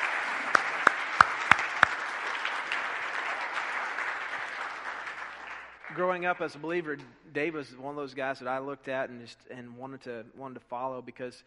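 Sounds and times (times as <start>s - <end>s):
crowd clapping: 0.0s - 6.6s
speech: 6.0s - 11.4s.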